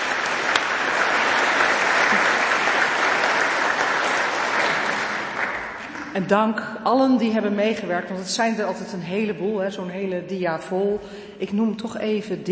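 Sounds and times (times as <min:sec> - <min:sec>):
audience clapping: 0:00.0 - 0:06.2
speech: 0:06.2 - 0:12.5.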